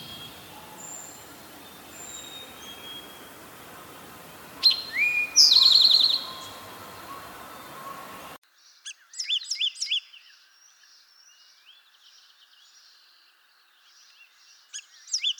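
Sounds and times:
towhee calling: 0:00.0 - 0:08.4.

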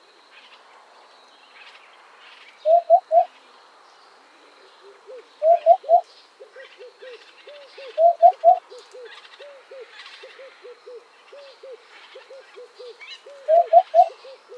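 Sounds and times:
hoopoe calling: 0:02.6 - 0:03.3, 0:04.8 - 0:14.5.

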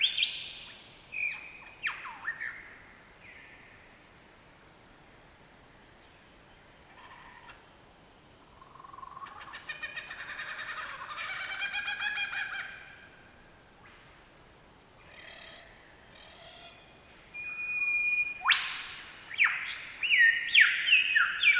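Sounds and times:
superb lyrebird calling: 0:06.9 - 0:07.6, 0:08.6 - 0:13.2, 0:15.0 - 0:21.5.

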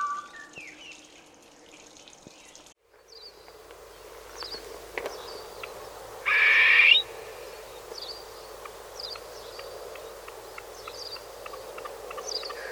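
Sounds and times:
partridge whistling: 0:04.5 - 0:12.5
faint bird chattering: 0:05.1 - 0:12.6.

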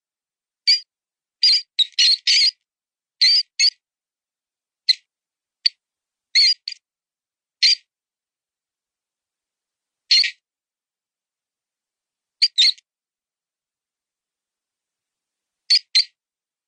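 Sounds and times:
mouse sound: 0:00.7 - 0:03.8, 0:04.9 - 0:06.8, 0:07.6 - 0:07.9, 0:10.1 - 0:10.4, 0:12.4 - 0:12.9, 0:15.7 - 0:16.2.

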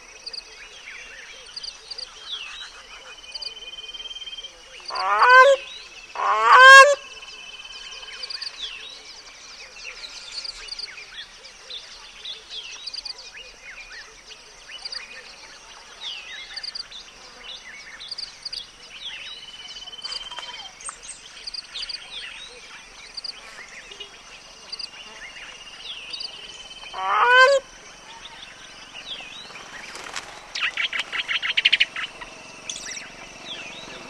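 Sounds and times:
Grey Crowned Crane calling: 0:04.8 - 0:08.3, 0:26.2 - 0:34.0.

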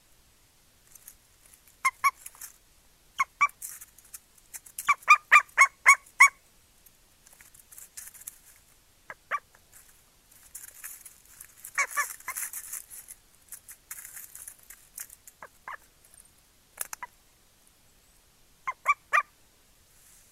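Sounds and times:
bird calling: 0:01.8 - 0:02.4, 0:03.2 - 0:03.6, 0:04.8 - 0:06.4, 0:09.1 - 0:09.5, 0:11.7 - 0:12.5, 0:15.4 - 0:16.2, 0:18.6 - 0:19.3.

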